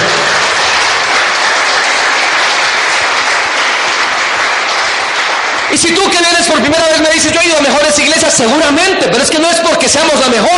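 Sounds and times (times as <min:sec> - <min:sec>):
audience applause: 0:00.0 - 0:07.4
speech: 0:05.8 - 0:10.5.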